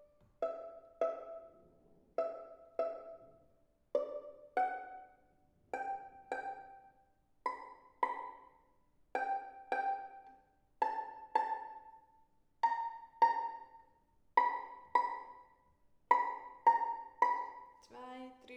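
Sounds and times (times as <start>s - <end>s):
violin in a children's orchestra: 0.0s - 18.3s.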